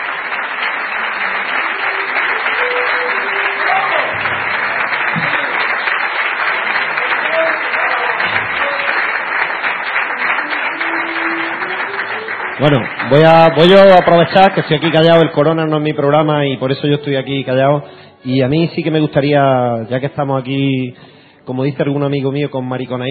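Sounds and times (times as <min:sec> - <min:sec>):
audience applause: 0:00.0 - 0:15.7
speech: 0:12.6 - 0:23.0.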